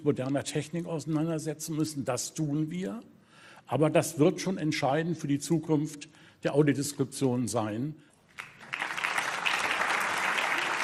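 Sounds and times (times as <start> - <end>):
speech: 0.0 - 8.5
audience applause: 8.4 - 10.8.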